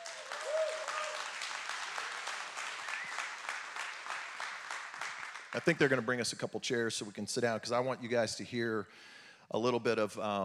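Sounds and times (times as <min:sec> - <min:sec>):
whistle or cheer: 0:00.0 - 0:01.4, 0:02.6 - 0:03.4
audience applause welcoming a speaker: 0:00.0 - 0:06.0
speech: 0:05.6 - 0:10.4.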